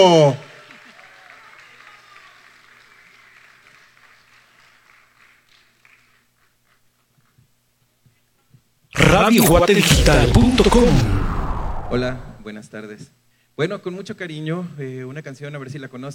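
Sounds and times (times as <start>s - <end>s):
speech: 0.0s - 0.5s, 9.1s - 11.2s, 11.9s - 16.1s
audience applause: 0.5s - 6.0s.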